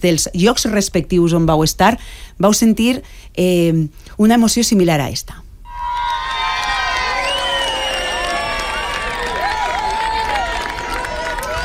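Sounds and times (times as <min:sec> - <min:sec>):
speech: 0:00.0 - 0:05.4
crowd cheering and applauding during solar eclipse: 0:05.7 - 0:11.6.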